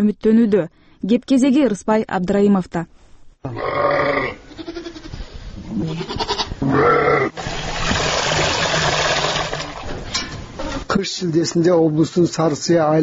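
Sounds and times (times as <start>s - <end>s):
speech: 0.0s - 4.4s, 5.8s - 7.5s, 11.0s - 13.0s
goats and sheep bleating in a Kyrgyz village: 3.5s - 7.4s
rough noise: 5.1s - 11.0s.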